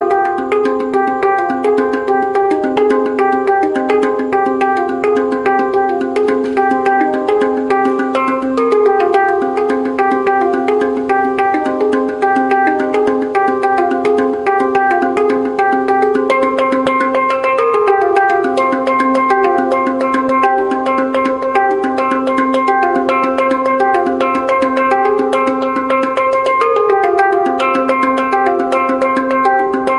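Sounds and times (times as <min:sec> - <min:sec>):
handpan playing: 0:00.0 - 0:29.9.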